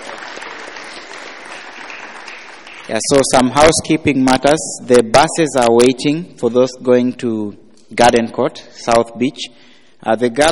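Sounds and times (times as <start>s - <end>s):
crowd clapping at a conference: 0.0s - 3.8s
speech: 2.9s - 10.4s.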